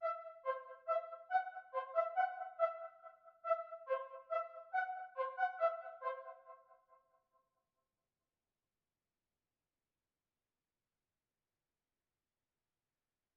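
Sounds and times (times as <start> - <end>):
music track in key E: 0.0 - 2.9, 3.5 - 6.4.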